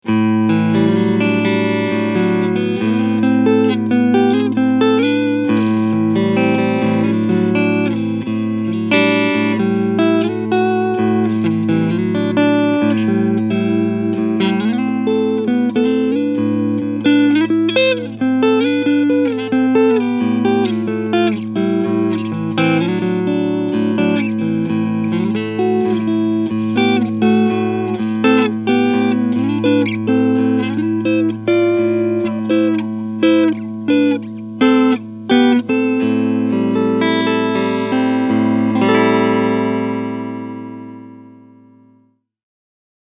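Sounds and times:
S7 Vintage 3TS guitar neck pickup tone: 0:00.0 - 0:42.1.

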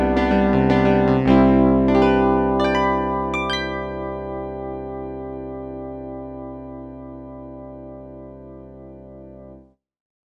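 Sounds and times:
Roland MKS-10 Planet-P piano with chorus: 0:00.1 - 0:09.6.

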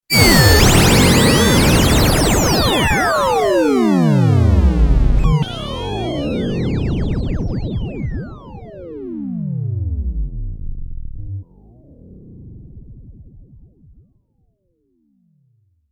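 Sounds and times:
MKS-80 fat FM synth effect: 0:00.1 - 0:11.6.

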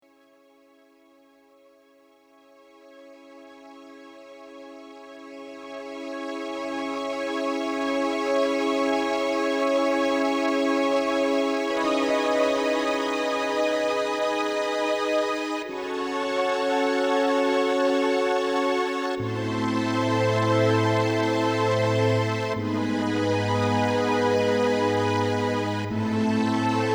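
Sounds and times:
string ensemble: 0:02.6 - 0:26.9.

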